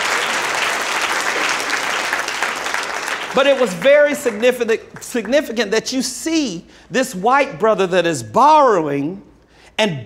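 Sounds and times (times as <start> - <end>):
audience applause: 0.0 - 5.0
speech: 3.4 - 10.0.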